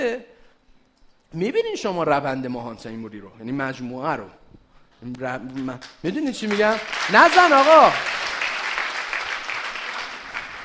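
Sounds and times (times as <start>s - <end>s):
speech: 0.0s - 0.3s, 1.3s - 4.4s, 5.0s - 8.2s
crowd audience applause: 6.5s - 10.6s.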